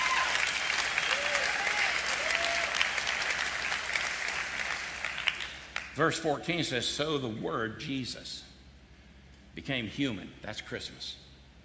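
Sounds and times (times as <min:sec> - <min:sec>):
faint whoops: 0:00.0 - 0:02.9
applause from a large crowd: 0:00.0 - 0:05.9
speech: 0:06.0 - 0:08.5, 0:09.6 - 0:11.2.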